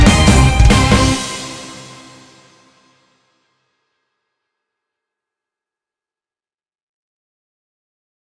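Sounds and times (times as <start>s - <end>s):
heavy guitar music: 0.0s - 2.8s.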